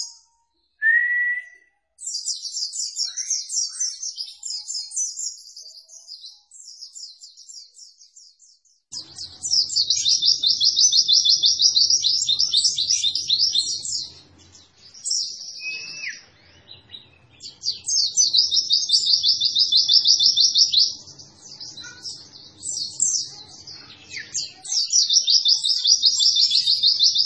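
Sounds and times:
white-eye high twittering song: 0.0s - 27.2s.

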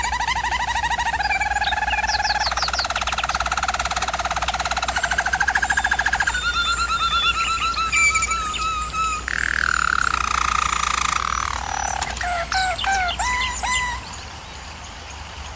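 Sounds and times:
German Roller canary singing rattling rolls: 0.0s - 13.9s.

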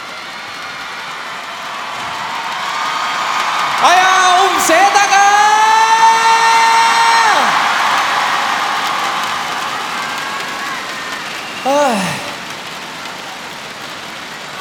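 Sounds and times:
concert crowd standing, cheering and screaming for a singer on stage: 0.0s - 14.5s
shrill sustained scream at a concert: 2.0s - 12.4s
speech: 3.8s - 4.8s.

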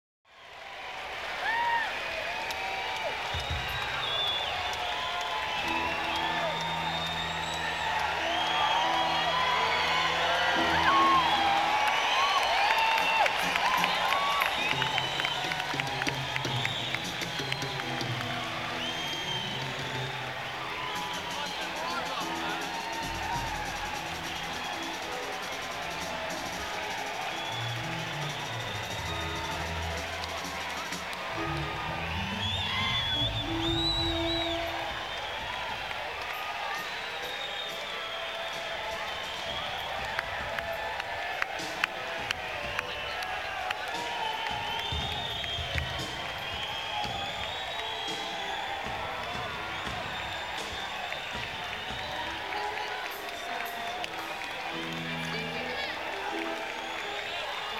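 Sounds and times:
crowd noise: 0.3s - 57.7s.

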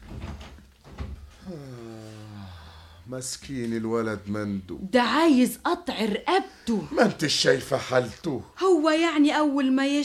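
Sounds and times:
door closing: 0.0s - 1.4s
speech: 3.1s - 10.0s.

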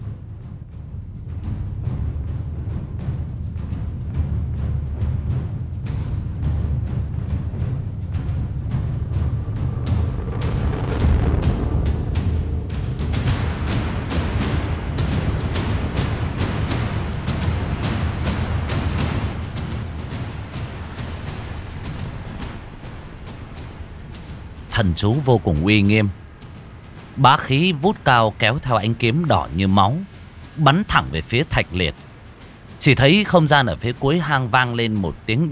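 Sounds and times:
dramatic background music for a battle scene in a fantasy story: 0.0s - 35.4s
speech: 24.8s - 26.2s, 27.2s - 32.1s, 32.8s - 35.4s.

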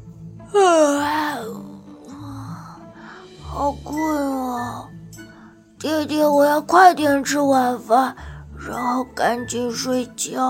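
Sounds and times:
speech: 0.5s - 1.6s, 3.6s - 4.9s, 5.8s - 10.4s
voice imitating a child's yawn: 0.5s - 5.0s.

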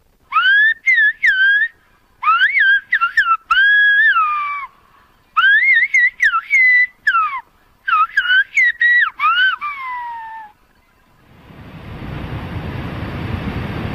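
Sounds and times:
Silbo Gomero whistled speech from La Gomera: 0.3s - 4.7s, 5.4s - 10.6s
rushing wash of surf or wind: 11.2s - 13.9s.

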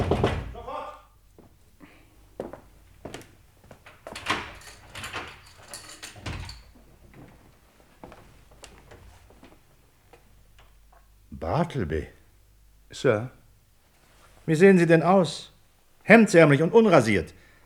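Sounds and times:
office door being unlocked and opened from the inside: 3.8s - 7.0s
speech: 11.7s - 12.2s, 12.9s - 13.4s, 14.4s - 17.4s.

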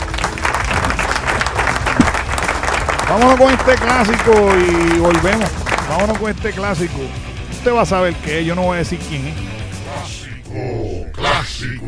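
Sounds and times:
audience applause: 0.0s - 6.5s
speech: 3.1s - 9.5s, 11.6s - 11.8s.

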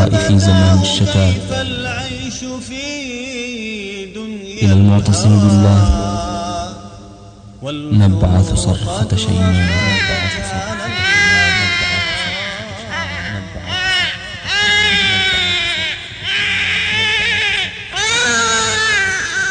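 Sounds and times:
low steady hum: 0.0s - 17.9s
speech: 0.1s - 1.8s, 4.6s - 6.0s, 7.9s - 10.2s
baby in a cradle crying: 9.3s - 19.4s.

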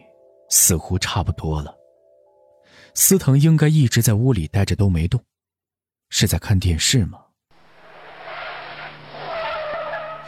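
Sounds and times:
speech: 0.5s - 1.8s, 2.8s - 5.3s, 6.1s - 7.3s
car braking with tires skidding: 7.6s - 10.2s
whining squeal: 7.6s - 10.2s.

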